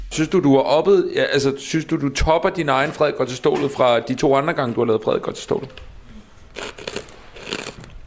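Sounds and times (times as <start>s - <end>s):
speech: 0.2s - 5.9s
potato chips being eaten with crisp crunching: 6.6s - 8.0s.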